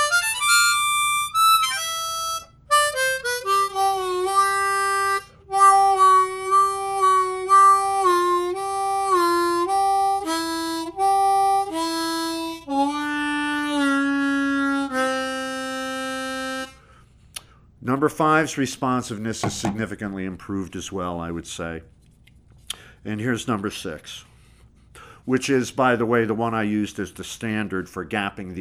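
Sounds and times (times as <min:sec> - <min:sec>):
harmonica playing sustained reedy notes: 0:00.0 - 0:17.1
speech: 0:18.1 - 0:21.9, 0:23.0 - 0:24.3, 0:25.3 - 0:28.5.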